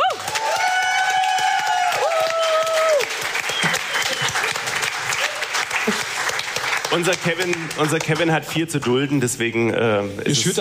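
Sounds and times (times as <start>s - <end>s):
audience applause: 0.0s - 8.5s
speech: 7.0s - 10.5s.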